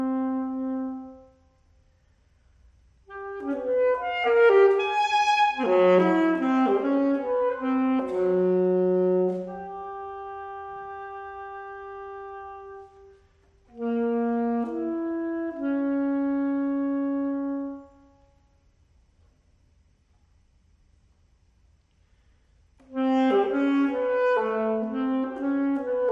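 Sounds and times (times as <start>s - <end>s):
alto saxophone solo: 0.0s - 1.8s, 3.0s - 18.7s, 22.8s - 26.0s.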